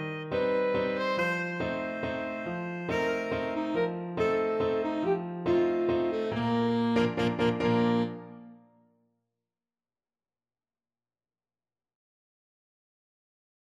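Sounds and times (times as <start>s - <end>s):
alto saxophone playing a waltz: 0.0s - 8.6s.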